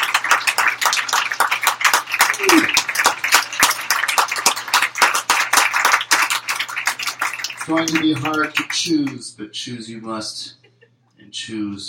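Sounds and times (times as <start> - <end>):
round of applause for Poem of the Year contest participants: 0.0 - 9.2
speech: 7.7 - 10.6, 11.3 - 11.8.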